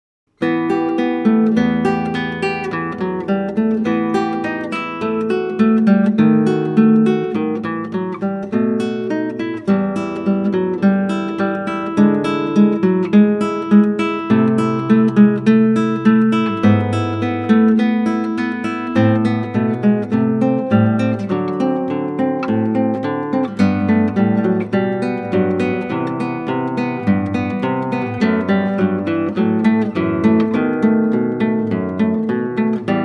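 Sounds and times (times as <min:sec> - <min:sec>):
classical guitar: 0:00.3 - 0:33.0.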